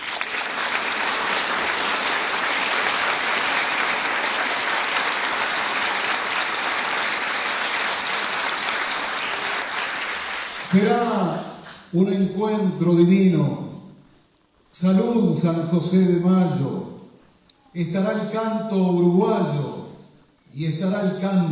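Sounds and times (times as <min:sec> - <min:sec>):
audience clapping: 0:00.0 - 0:11.9
speech: 0:10.7 - 0:13.6, 0:14.8 - 0:16.9, 0:17.8 - 0:19.7, 0:20.5 - 0:21.5.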